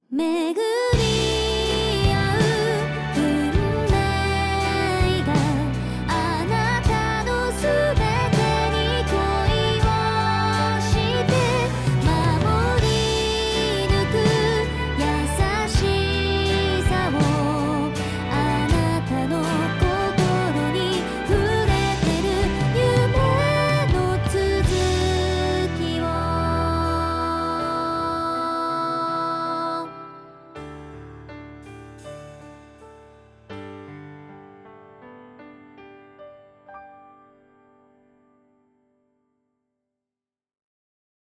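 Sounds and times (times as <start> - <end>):
song: 0.2 - 31.4.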